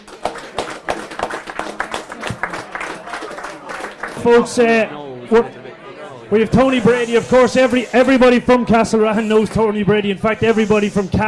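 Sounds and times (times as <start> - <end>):
audience applause: 0.0 - 4.8
speech: 4.2 - 5.6, 6.3 - 11.2.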